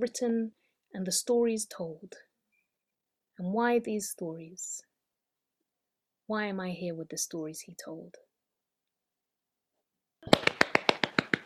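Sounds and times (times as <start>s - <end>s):
speech: 0.0s - 2.3s, 3.4s - 4.9s, 6.3s - 8.2s
small light hand claps: 10.2s - 11.4s.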